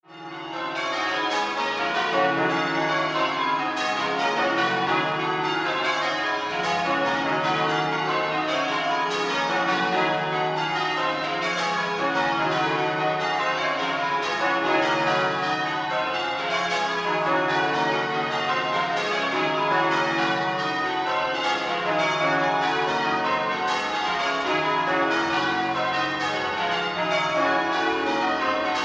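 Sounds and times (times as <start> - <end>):
cathedral bells ringing: 0.1 - 28.8.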